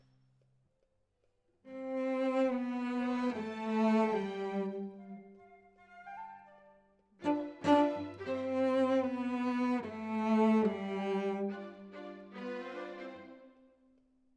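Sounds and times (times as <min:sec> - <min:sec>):
cello solo: 0:01.7 - 0:05.4, 0:07.2 - 0:13.7.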